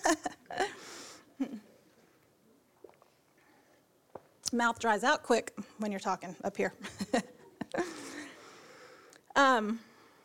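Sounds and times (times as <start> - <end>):
person sipping water: 2.7 - 4.5
speech: 4.5 - 7.3, 9.5 - 9.9.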